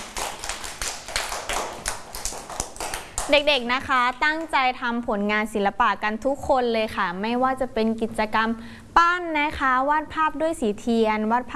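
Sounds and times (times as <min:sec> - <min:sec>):
children clapping hands: 0:00.0 - 0:04.6
speech: 0:03.3 - 0:11.5.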